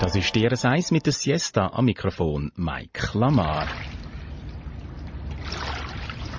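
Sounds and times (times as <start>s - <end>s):
speech: 0.1s - 3.9s
water lapping and splashing against a lake shore: 3.3s - 6.3s.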